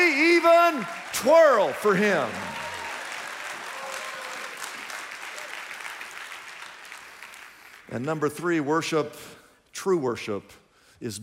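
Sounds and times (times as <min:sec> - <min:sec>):
audience clapping: 0:00.0 - 0:08.4
speech: 0:00.8 - 0:02.6, 0:07.9 - 0:11.2.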